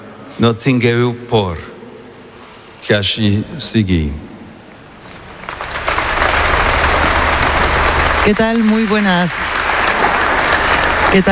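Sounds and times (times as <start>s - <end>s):
speech: 0.4s - 1.7s, 2.8s - 4.3s, 8.2s - 9.6s, 11.1s - 11.3s
applause after a speech by Pope Leo XIV at Montserrat Abbey: 5.1s - 11.3s.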